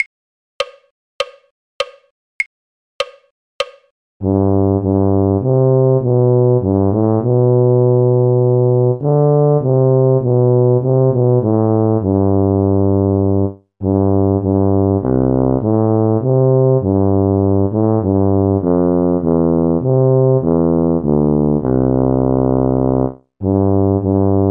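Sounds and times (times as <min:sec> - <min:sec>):
tuba: 0:04.2 - 0:24.5.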